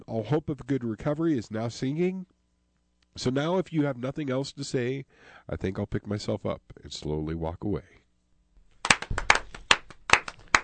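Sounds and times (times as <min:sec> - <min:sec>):
speech: 0:00.1 - 0:02.4, 0:03.2 - 0:08.0
small audience applauding a poem after a reading: 0:08.8 - 0:10.6.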